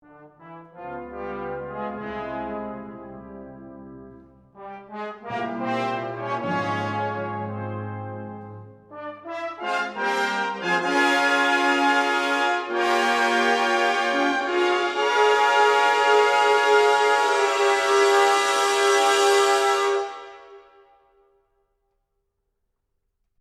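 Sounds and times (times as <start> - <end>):
fanfare: 4.6 - 20.6.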